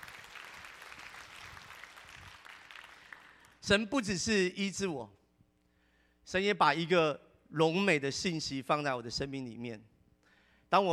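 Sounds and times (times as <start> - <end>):
audience applause: 0.0 - 3.5
speech: 3.7 - 5.2, 6.3 - 9.9, 10.7 - 10.9.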